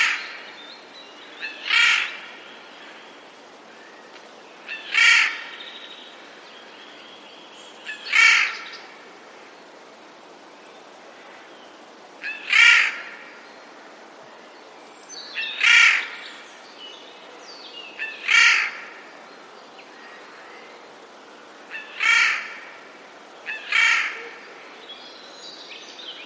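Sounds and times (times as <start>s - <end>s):
jay calling: 1.4s - 2.2s, 4.7s - 5.5s, 7.9s - 8.7s, 12.2s - 13.2s, 18.0s - 18.9s, 21.7s - 22.6s, 23.5s - 24.4s.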